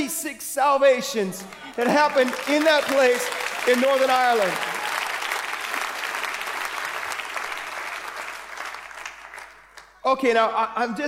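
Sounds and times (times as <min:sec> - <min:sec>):
speech: 0:00.0 - 0:04.8, 0:10.0 - 0:11.0
audience applause: 0:01.4 - 0:09.9.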